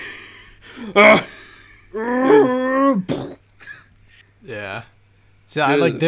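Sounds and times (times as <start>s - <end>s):
speech: 0.8s - 2.2s, 5.5s - 6.0s
voice imitating a zombie's gurgly roar: 2.0s - 3.4s.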